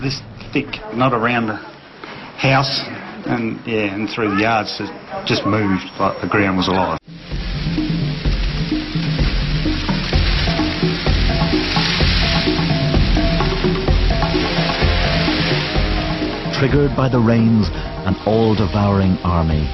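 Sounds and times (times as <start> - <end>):
speech: 0.0 - 1.7, 2.4 - 7.4, 16.6 - 19.7
swarm of locusts: 7.1 - 19.7.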